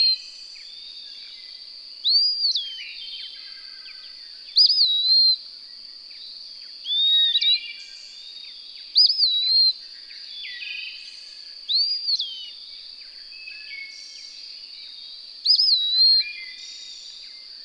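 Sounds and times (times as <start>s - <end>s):
bird whistling song: 0.0s - 1.1s, 2.0s - 5.4s, 6.8s - 8.0s, 8.9s - 11.0s, 11.7s - 12.6s, 15.4s - 17.4s.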